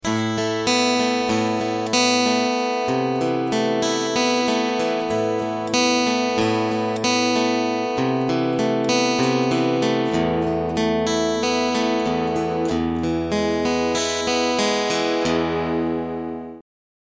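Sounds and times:
high boost guitar picking: 0:00.0 - 0:16.6.

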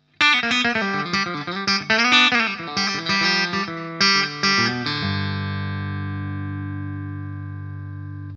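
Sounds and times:
Custom 22 clean single-coil electric guitar: 0:00.0 - 0:08.3.

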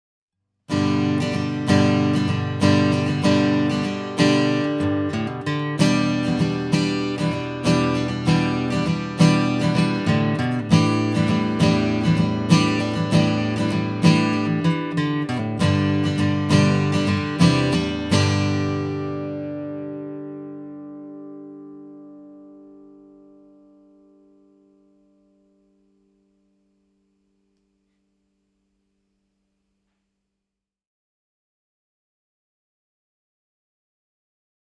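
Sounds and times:
acoustic guitar: 0:00.7 - 0:28.0.

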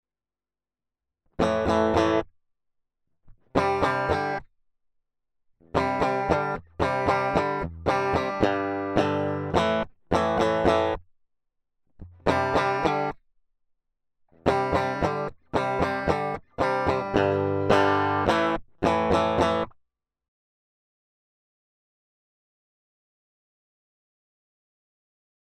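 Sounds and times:
Tele electric guitar through Plexi: 0:01.4 - 0:02.2, 0:03.6 - 0:04.4, 0:05.7 - 0:11.0, 0:12.0 - 0:13.2, 0:14.4 - 0:19.7.

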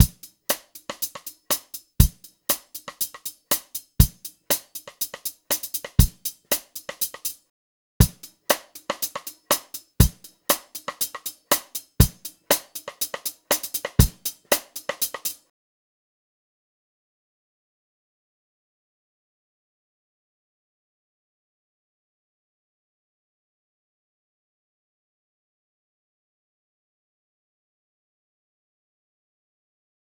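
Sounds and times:
saturated EQ'd drums: 0:00.0 - 0:15.5.

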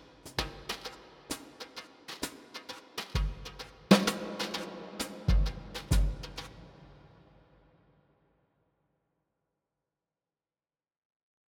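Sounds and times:
drums with SuperPlate E Plate III reverb: 0:00.0 - 0:07.8.

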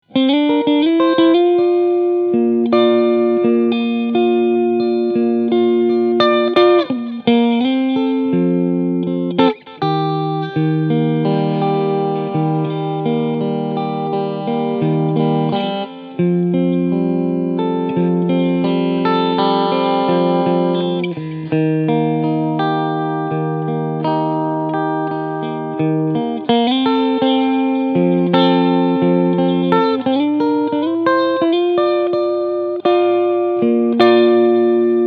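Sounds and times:
Squier Strat clean electric guitar on middle single-coil pickup: 0:00.0 - 0:35.0.

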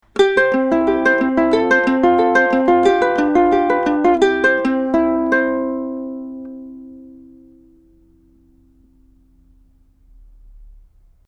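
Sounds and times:
ukulele recorded with TLM193 microphone: 0:00.0 - 0:09.5.

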